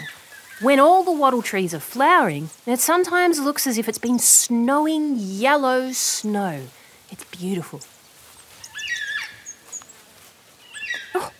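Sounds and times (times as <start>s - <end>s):
black cockatoos calling: 0.0s - 1.8s, 7.8s - 11.3s
faint rustling: 0.0s - 11.3s
speech: 0.6s - 8.0s.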